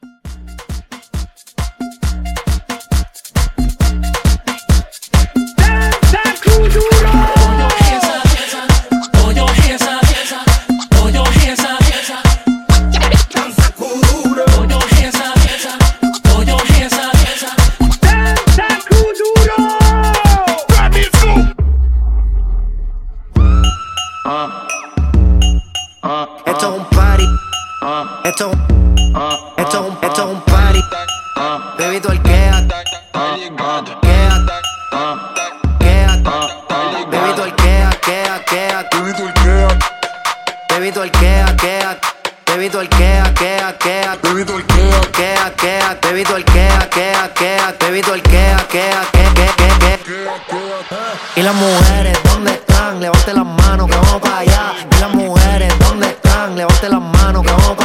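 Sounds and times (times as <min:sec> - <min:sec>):
Latin hype music: 0:00.0 - 0:22.0, 0:23.3 - 0:57.8.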